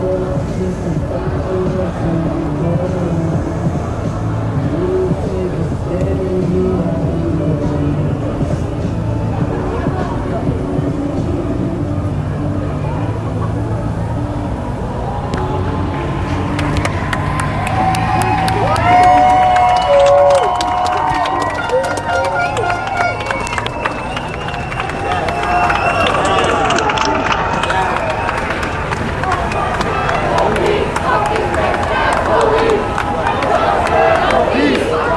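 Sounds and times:
crowd voices at a peaceful protest in New York City: 0:00.0 - 0:35.1
raised voices: 0:00.0 - 0:35.1
traffic-like rumble: 0:00.0 - 0:35.1.

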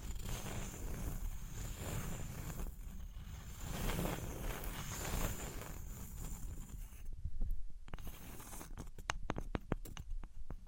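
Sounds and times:
wood, cork, sponge, foam, glass and plastic scraping and rubbing: 0:00.0 - 0:07.2, 0:07.9 - 0:10.6
sharp clicks and taps: 0:08.7 - 0:10.6.

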